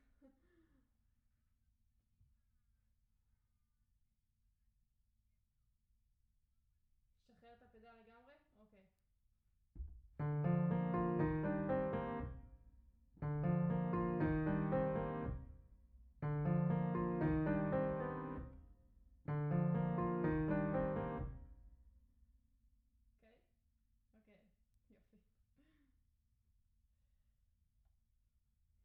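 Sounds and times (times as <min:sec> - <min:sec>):
piano: 0:10.2 - 0:12.6, 0:13.2 - 0:15.6, 0:16.2 - 0:21.6.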